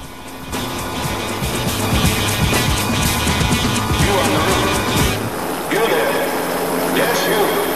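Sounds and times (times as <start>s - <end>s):
helicopter rotor blades thudding: 0.0s - 5.5s
helicopter hovering overhead: 0.0s - 7.7s.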